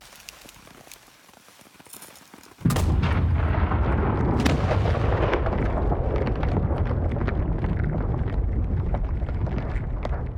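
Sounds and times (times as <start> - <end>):
background explosion: 2.6 - 10.3.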